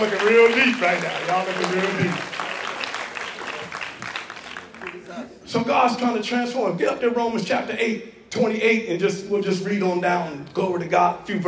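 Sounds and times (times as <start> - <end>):
speech: 0.0 - 2.3, 5.2 - 11.4
audience clapping hands: 0.0 - 5.3.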